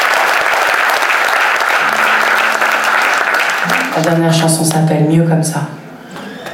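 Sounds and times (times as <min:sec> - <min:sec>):
audience applauding loudly: 0:00.0 - 0:04.8
speech: 0:04.0 - 0:05.8.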